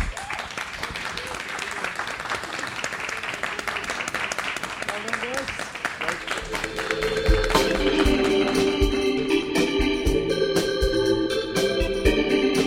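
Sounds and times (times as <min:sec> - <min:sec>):
audience round of applause: 0:00.0 - 0:09.8
tonal sounds: 0:06.4 - 0:12.5.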